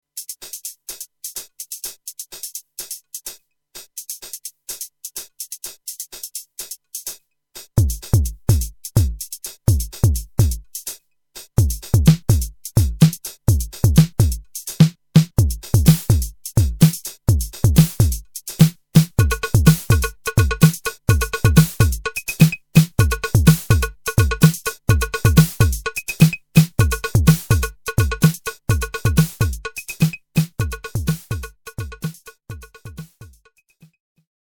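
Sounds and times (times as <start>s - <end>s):
drums: 0.2s - 33.4s.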